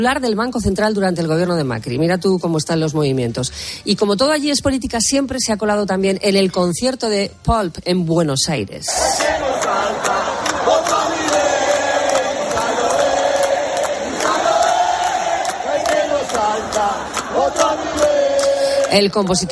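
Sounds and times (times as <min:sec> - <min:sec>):
speech: 0:00.0 - 0:11.4, 0:18.9 - 0:19.5
rock concert crowd chanting a Spanish political slogan: 0:08.9 - 0:19.5.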